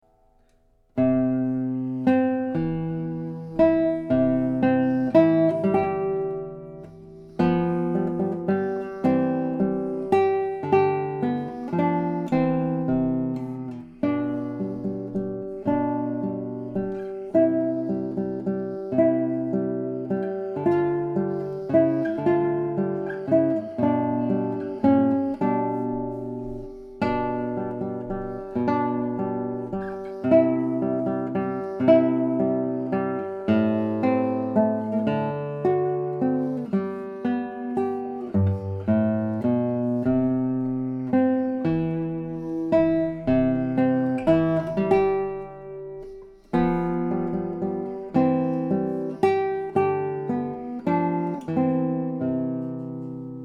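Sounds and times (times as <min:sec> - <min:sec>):
guitar waltz: 0:00.0 - 0:53.4.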